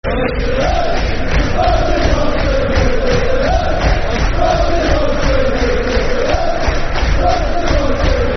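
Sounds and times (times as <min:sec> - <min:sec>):
football crowd chanting: 0:00.0 - 0:08.3.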